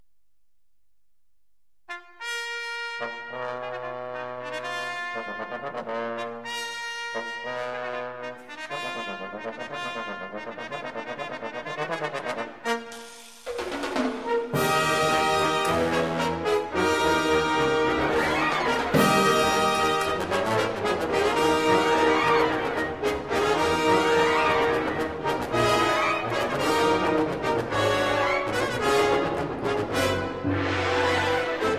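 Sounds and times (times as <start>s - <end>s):
bass trombone in a double concerto: 1.9s - 13.0s, 14.2s - 31.7s
trumpet in a double concerto: 1.9s - 31.7s
band playing a double concerto: 12.6s - 31.7s.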